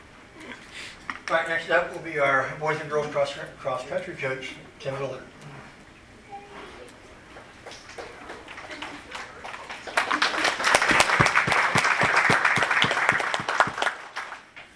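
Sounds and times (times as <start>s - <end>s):
speech: 1.3s - 5.4s
audience hand clapping: 7.3s - 14.7s.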